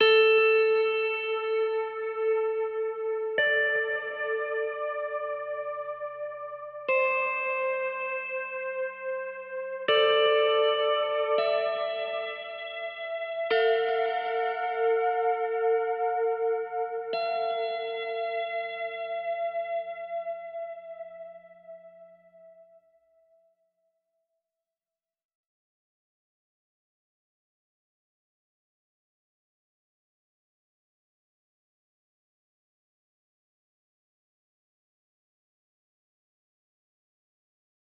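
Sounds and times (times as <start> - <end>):
guitar: 0.0 - 23.4.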